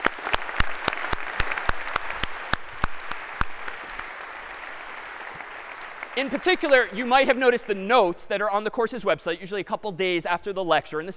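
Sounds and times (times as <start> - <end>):
audience round of applause: 0.0 - 7.4
speech: 6.2 - 11.1.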